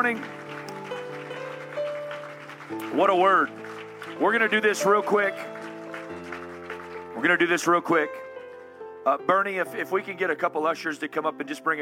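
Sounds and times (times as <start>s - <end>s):
speech: 0.0s - 0.5s, 2.7s - 5.5s, 7.2s - 8.2s, 9.0s - 11.8s
audience clapping hands in praise: 0.0s - 8.7s.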